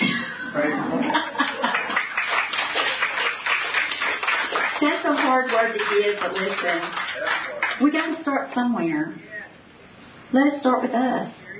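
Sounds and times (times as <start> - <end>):
laughter: 0.2 - 2.1
crowd clapping: 1.4 - 8.1
speech: 5.3 - 9.3, 10.3 - 11.4.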